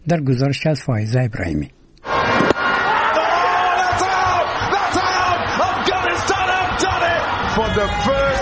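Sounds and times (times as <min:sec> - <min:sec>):
speech: 0:00.0 - 0:01.8, 0:07.6 - 0:08.2
crowd celebrating cricket victory in street: 0:02.0 - 0:08.4.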